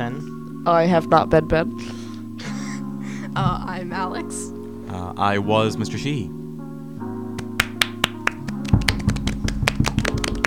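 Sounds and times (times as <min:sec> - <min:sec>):
speech: 0:00.1 - 0:02.0, 0:03.4 - 0:06.4
hand clapping: 0:07.3 - 0:10.4.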